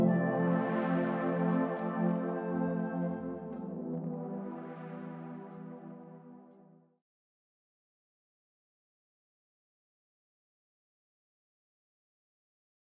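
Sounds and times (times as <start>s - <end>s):
music: 0.0s - 7.0s.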